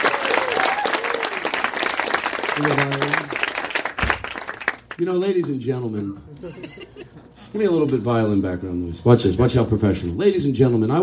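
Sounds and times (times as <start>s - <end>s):
audience applause for the opening act at a comedy show: 0.0s - 5.0s
speech: 2.6s - 3.2s, 5.0s - 11.0s
laughter: 6.1s - 7.5s.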